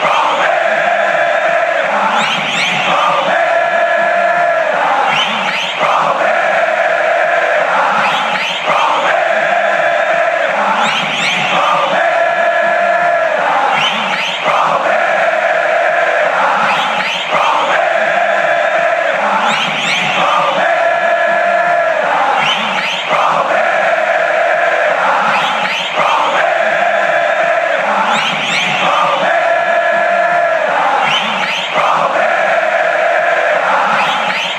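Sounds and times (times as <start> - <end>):
crowd chanting: 0.0 - 34.5
whistles: 2.1 - 2.9, 5.0 - 5.9, 8.0 - 8.8, 10.8 - 11.6, 13.7 - 14.6, 16.6 - 17.5, 19.4 - 20.4, 22.4 - 23.2, 25.3 - 26.1, 28.1 - 28.9, 31.0 - 31.9, 34.0 - 34.5.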